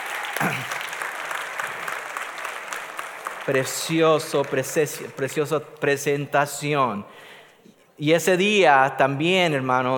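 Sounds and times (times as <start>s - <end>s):
audience applause: 0.0s - 5.2s
speech: 3.4s - 7.4s, 8.0s - 9.9s.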